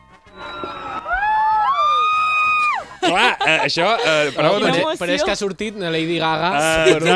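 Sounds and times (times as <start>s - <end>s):
crowd shouting and cheering loudly: 0.0s - 5.3s
laughter: 2.7s - 5.4s, 6.5s - 7.1s
speech: 3.1s - 7.1s.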